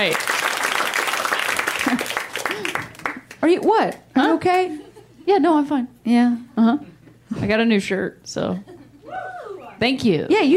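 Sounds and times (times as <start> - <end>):
speech: 0.0 - 0.3, 3.4 - 9.2, 9.8 - 10.5
audience clapping: 0.0 - 4.7.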